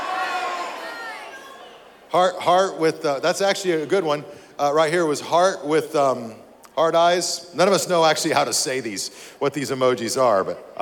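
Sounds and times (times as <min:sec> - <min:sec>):
audience yelling out answers together: 0:00.0 - 0:02.0
speech: 0:02.1 - 0:10.7.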